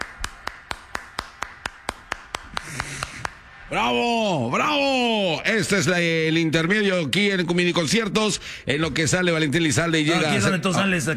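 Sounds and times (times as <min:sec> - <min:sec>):
applause: 0:00.0 - 0:03.4
speech: 0:03.7 - 0:11.1.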